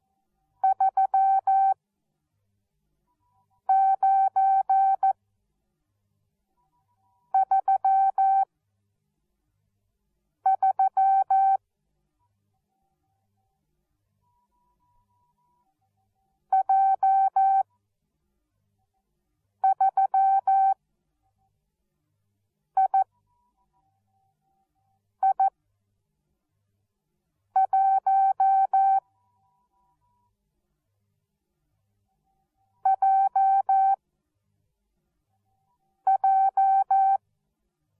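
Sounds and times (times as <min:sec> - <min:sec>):
morse code beeps: 0:00.6 - 0:01.8, 0:03.7 - 0:05.2, 0:07.3 - 0:08.4, 0:10.5 - 0:11.6, 0:16.5 - 0:17.6, 0:19.6 - 0:20.8, 0:25.2 - 0:25.5, 0:27.6 - 0:29.0, 0:32.8 - 0:34.0, 0:36.1 - 0:37.2.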